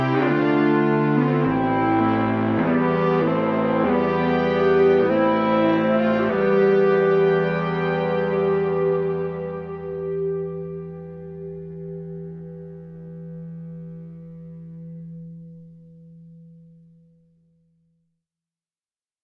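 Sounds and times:
Ebow guitar ensemble: 0.0s - 12.4s.

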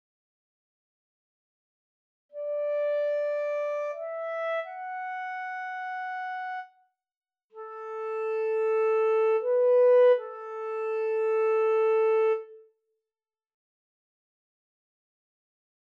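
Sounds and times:
clarinet: 2.4s - 6.8s, 7.6s - 12.7s.

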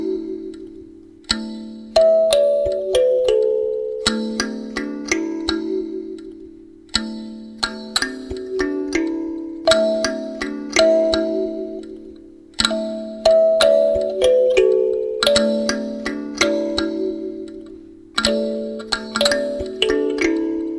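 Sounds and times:
kalimba playing wellness music: 0.0s - 20.7s.

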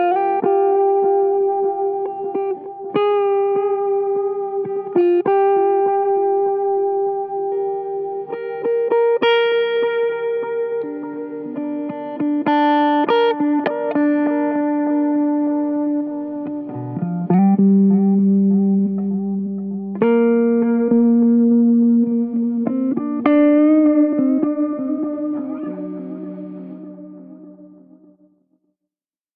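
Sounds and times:
guitar improvisation in G minor at 100 BPM: 0.0s - 28.4s.

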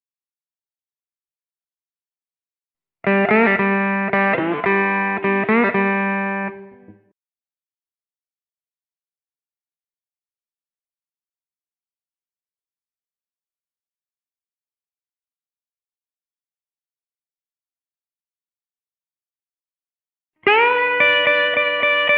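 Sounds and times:
slide guitar in G at 110 BPM: 3.1s - 6.9s, 20.4s - 22.1s.

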